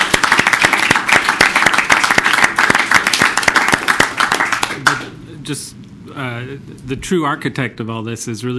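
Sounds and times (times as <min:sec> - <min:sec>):
audience applause: 0:00.0 - 0:05.1
speech: 0:05.5 - 0:08.5.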